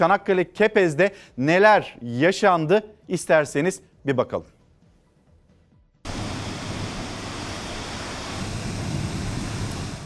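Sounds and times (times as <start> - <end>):
speech: 0.0 - 4.6
sea waves: 6.1 - 10.0
storm wind in Çanakkale: 6.1 - 10.0.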